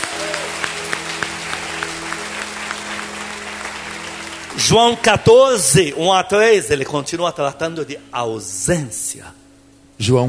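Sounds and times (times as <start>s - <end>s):
audience applauding: 0.0s - 6.6s
speech: 4.6s - 9.4s, 10.0s - 10.2s.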